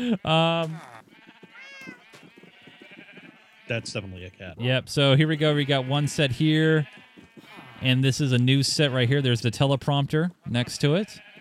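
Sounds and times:
speech: 0:00.0 - 0:00.9, 0:03.7 - 0:07.0, 0:07.8 - 0:11.3
sheep bleating: 0:00.0 - 0:04.4, 0:05.0 - 0:09.4, 0:10.3 - 0:11.3.

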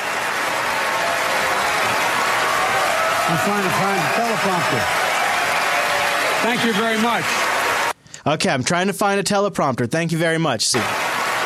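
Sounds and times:
audience applause in played recording: 0:00.0 - 0:08.0, 0:10.7 - 0:11.4
speech: 0:03.3 - 0:05.1, 0:06.4 - 0:07.5, 0:08.2 - 0:11.0.

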